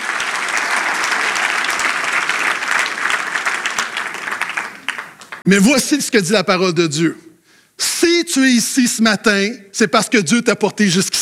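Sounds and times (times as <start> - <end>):
audience applause: 0.0 - 5.4
speech: 5.5 - 7.3, 8.4 - 11.2.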